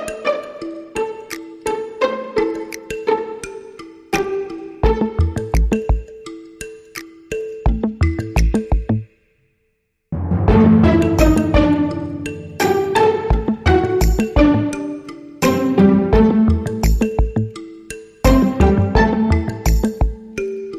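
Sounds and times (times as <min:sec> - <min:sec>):
dramedy swag music without drums: 0:00.0 - 0:09.2, 0:10.2 - 0:20.7.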